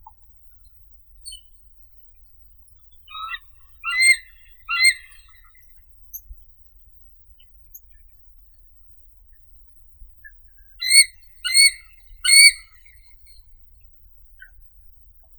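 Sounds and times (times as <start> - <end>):
white-headed eagle Haliaeetus leucocephalus: 2.9 - 5.6, 10.8 - 12.9.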